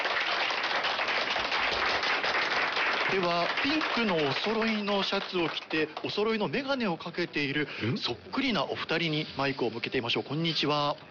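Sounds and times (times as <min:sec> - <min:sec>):
audience applause at an event at a Tottori roadside rest stop: 0:00.0 - 0:06.4
speech: 0:03.1 - 0:11.0.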